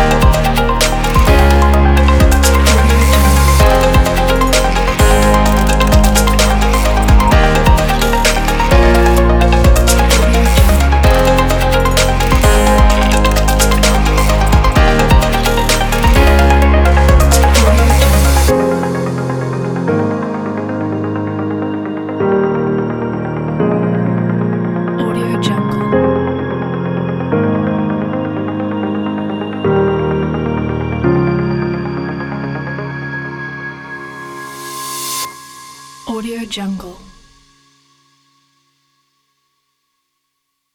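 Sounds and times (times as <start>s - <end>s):
inspiring glitch digital corporate technology music: 0.0s - 32.4s.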